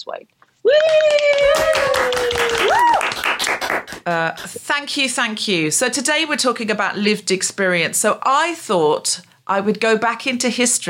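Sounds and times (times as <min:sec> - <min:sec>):
speech: 0:00.0 - 0:10.8
audience applause welcoming a comedian to the mic: 0:00.7 - 0:04.1.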